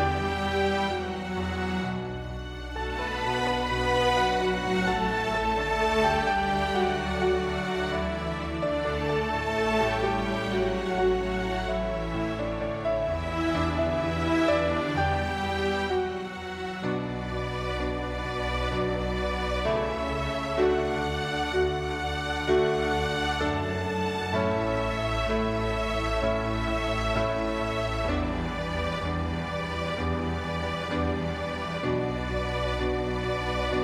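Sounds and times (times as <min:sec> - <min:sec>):
piano: 0:00.0 - 0:33.8
string orchestra: 0:00.0 - 0:33.8.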